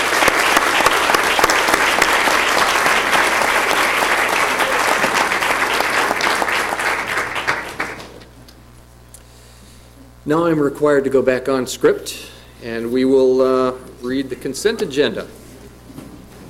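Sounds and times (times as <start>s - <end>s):
audience applause: 0.0s - 8.2s
speech: 10.3s - 15.4s.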